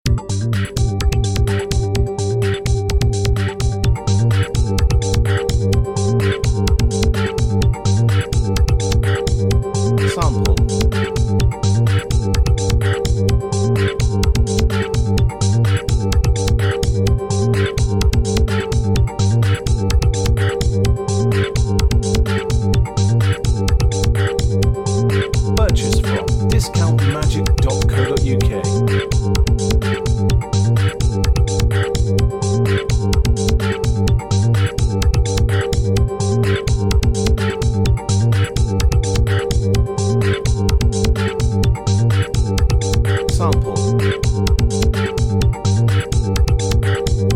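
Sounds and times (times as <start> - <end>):
electro backing music: 0.1 - 47.3.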